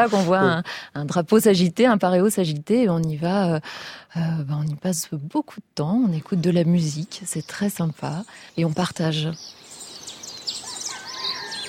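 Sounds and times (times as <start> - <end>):
speech: 0.0 - 9.6
Tahitian birds chirping and whistling: 6.4 - 11.6.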